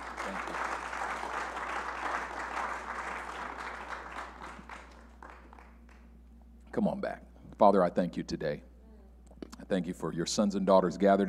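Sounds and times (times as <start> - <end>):
audience hand clapping: 0.0 - 6.2
speech: 6.8 - 8.7, 9.7 - 11.2.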